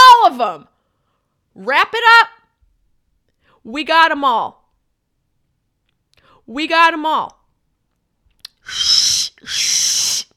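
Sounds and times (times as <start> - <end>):
speech: 0.4 - 0.7, 1.6 - 2.4, 3.6 - 4.6, 6.5 - 7.4, 8.7 - 9.8
person attempting to whistle: 8.5 - 10.3.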